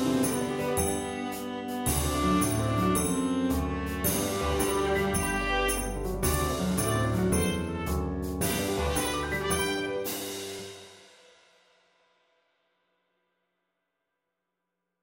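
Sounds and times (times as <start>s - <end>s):
viola melody: 0.0s - 10.1s.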